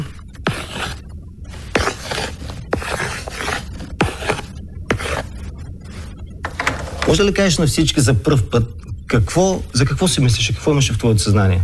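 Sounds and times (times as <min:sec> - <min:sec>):
pen writing on paper: 0:00.0 - 0:07.2
speech: 0:07.1 - 0:11.6.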